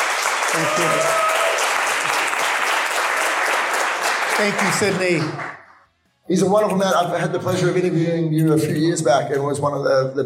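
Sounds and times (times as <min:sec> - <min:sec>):
audience applause: 0:00.0 - 0:05.8
speech: 0:00.5 - 0:01.4, 0:04.4 - 0:05.6, 0:06.3 - 0:10.2.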